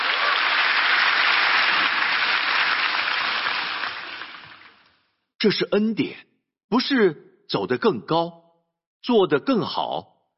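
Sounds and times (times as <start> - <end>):
audience applause: 0.0 - 4.8
speech: 5.4 - 8.4, 9.0 - 10.1.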